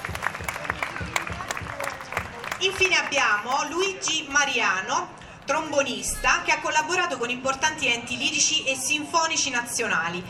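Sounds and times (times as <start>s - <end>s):
audience applause greeting a newly introduced guest: 0.0s - 3.6s
speech: 2.6s - 10.2s.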